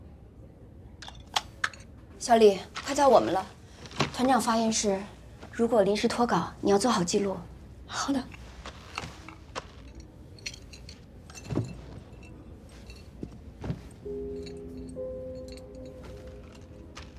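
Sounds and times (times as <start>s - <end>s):
house keys jangling: 1.0s - 1.9s, 8.8s - 17.1s
speech: 2.2s - 3.6s, 4.2s - 8.4s.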